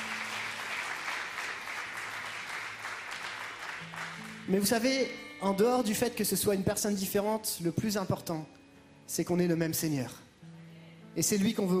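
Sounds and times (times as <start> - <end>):
crowd applauding to welcome a musician: 0.0 - 4.8
speech: 3.8 - 10.2, 11.2 - 11.7.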